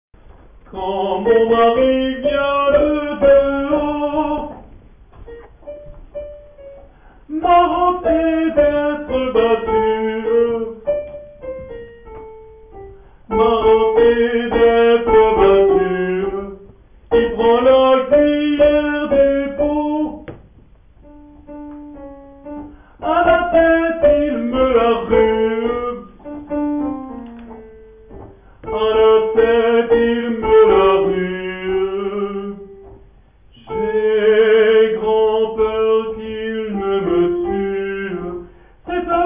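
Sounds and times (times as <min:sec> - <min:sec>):
sopranos singing: 0:00.7 - 0:04.8, 0:07.3 - 0:11.0, 0:13.3 - 0:20.4, 0:23.0 - 0:26.8, 0:27.4 - 0:39.2.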